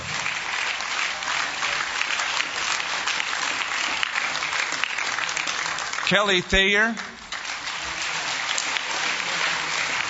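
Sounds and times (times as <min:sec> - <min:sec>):
audience applause: 0:00.0 - 0:10.0
speech: 0:06.1 - 0:07.1.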